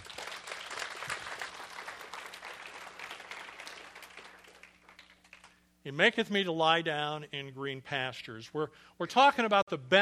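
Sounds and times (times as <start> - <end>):
audience applause: 0.0 - 5.6
speech: 5.8 - 10.0.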